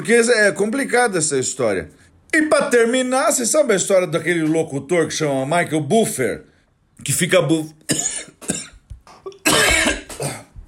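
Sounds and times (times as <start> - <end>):
speech: 0.0 - 8.3
person coughing from a tickle in the throat: 7.9 - 10.6.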